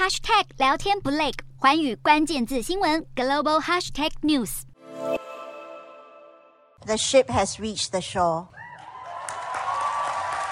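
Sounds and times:
speech: 0.0s - 5.2s, 6.8s - 8.6s
United Nations General Assembly members cheering loudly: 8.6s - 10.5s
United Nations General Assembly applauding: 8.7s - 10.5s.

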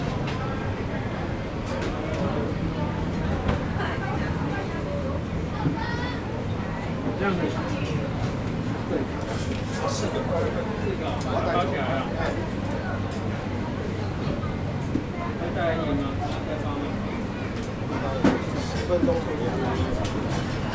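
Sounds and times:
crowd murmur at the Keelung Miaokou night market: 0.0s - 20.7s.

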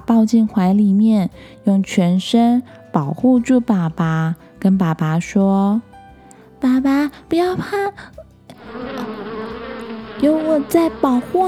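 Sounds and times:
speech: 0.1s - 5.9s, 6.6s - 8.8s, 10.2s - 11.4s
swarm of bees buzzing: 8.5s - 11.4s.

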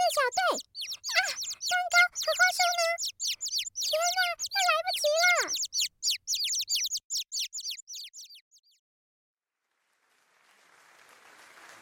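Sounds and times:
villagers giving squeaky chirping cheers: 0.0s - 8.2s
villagers clapping: 9.9s - 11.7s.

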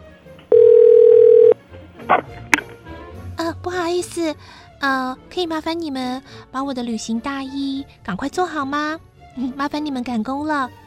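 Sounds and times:
telephone dial tone: 0.5s - 1.6s
speech: 3.6s - 10.8s.

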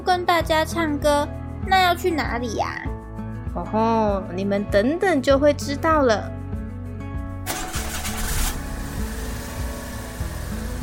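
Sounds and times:
speech: 0.1s - 2.9s, 3.6s - 6.4s
car engine starting and driving: 7.4s - 10.8s.

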